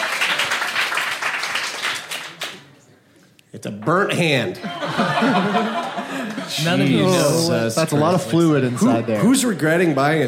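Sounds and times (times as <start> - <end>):
audience round of applause: 0.0 - 2.6
speech: 3.6 - 5.7, 6.5 - 10.2
laughter: 4.5 - 10.2.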